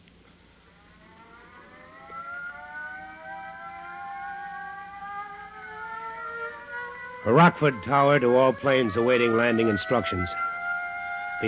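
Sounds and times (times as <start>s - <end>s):
airfield crash alarm siren wailing: 0.5s - 11.4s
speech: 7.2s - 10.5s.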